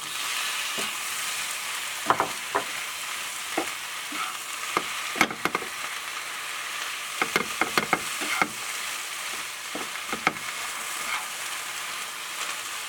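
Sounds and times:
squid stir-frying in a pan with salted egg yolk: 0.0 - 12.8
stirring clinks and scrapes: 7.2 - 8.6, 9.3 - 11.3.

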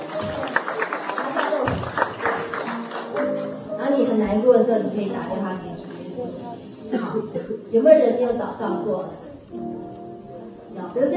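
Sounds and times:
audience clapping hands: 0.0 - 3.7
speech: 4.3 - 9.7, 10.9 - 11.1.

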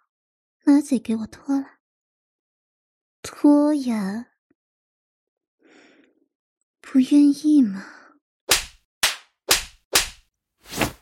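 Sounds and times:
speech: 0.6 - 1.8, 3.2 - 4.3, 6.9 - 8.0
slap across the face: 8.5 - 11.0.

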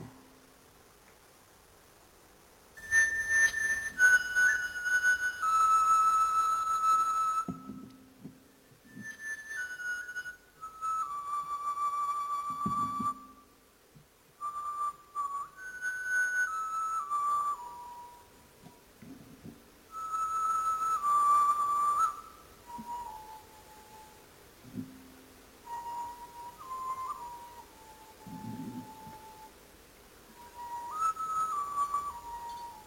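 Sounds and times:
8000-year-old bone flute playing: 2.8 - 13.6, 14.4 - 18.9, 19.9 - 29.6, 30.3 - 32.8.

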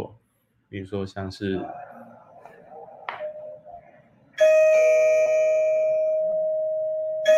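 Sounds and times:
speech: 0.0 - 1.9
faint murmuring: 1.4 - 4.4
intercom doorbell chime: 4.4 - 7.3.

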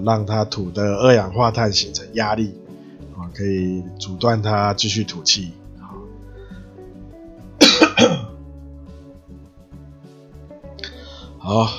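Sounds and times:
speech: 0.0 - 2.6, 3.3 - 5.6, 11.5 - 11.7
soft music: 0.0 - 11.7
person with a dry throat coughing: 7.6 - 8.3.

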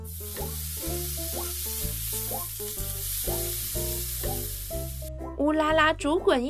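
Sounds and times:
bacon sizzling in a pan: 0.0 - 5.1
speech: 5.5 - 6.4.

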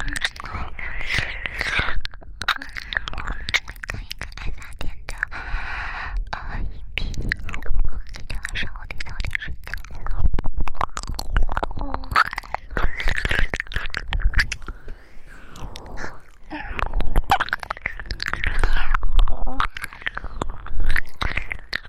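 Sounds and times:
ASMR ear licking wet mouth sounds: 0.0 - 5.4, 6.3 - 21.8
soft breathy noise: 0.3 - 7.4, 11.9 - 21.1.

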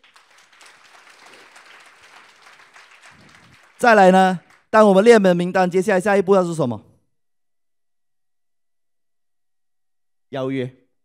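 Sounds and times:
audience applause: 0.0 - 4.7
speech: 3.8 - 6.9, 10.3 - 10.8.

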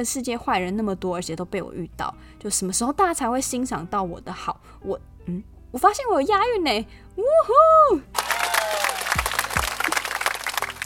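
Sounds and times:
speech: 0.0 - 8.2
applause: 8.2 - 10.8.

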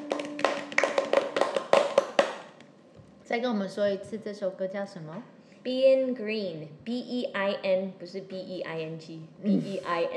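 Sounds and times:
light applause from a few people: 0.0 - 2.5
faint steady hum: 0.0 - 10.1
speech: 3.3 - 10.1.

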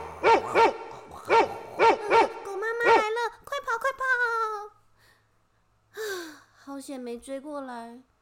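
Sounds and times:
dog barking: 0.2 - 3.2
speech: 6.9 - 8.1.

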